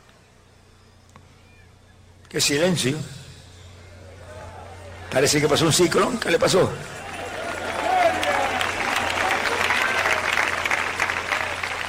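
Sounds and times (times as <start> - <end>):
speech: 2.3 - 3.2, 5.2 - 7.1
audience applauding: 6.8 - 11.8.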